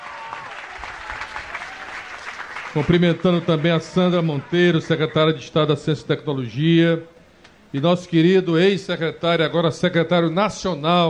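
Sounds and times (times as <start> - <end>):
applause for the teachers of Ceará: 0.0 - 5.2
speech: 2.8 - 11.0.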